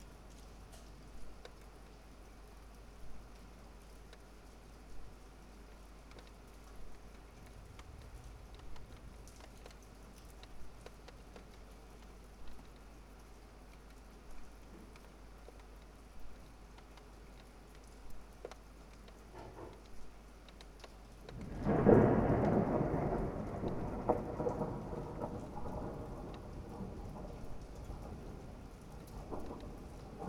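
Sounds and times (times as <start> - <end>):
rain heard out of a window: 0.0 - 30.2
thunder: 7.4 - 10.4, 21.3 - 30.2.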